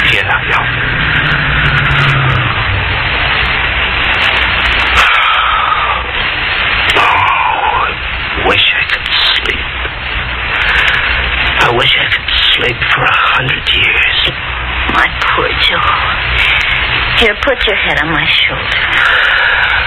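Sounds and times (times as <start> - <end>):
car engine running as the car pulls over by a gas station at night: 0.0 - 5.1
static hiss: 0.0 - 19.8.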